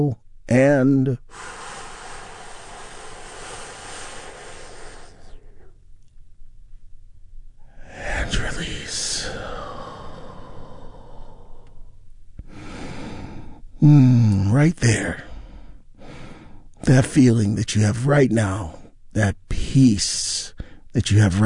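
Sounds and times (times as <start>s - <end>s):
speech: 0.0s - 1.6s, 13.8s - 15.2s, 16.8s - 21.4s
big deep breath during a guided relaxation exercise: 1.2s - 5.8s, 7.6s - 14.4s, 15.1s - 16.8s.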